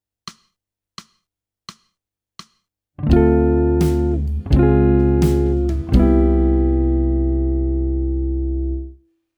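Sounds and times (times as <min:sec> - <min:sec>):
jazz music: 0:03.0 - 0:07.8.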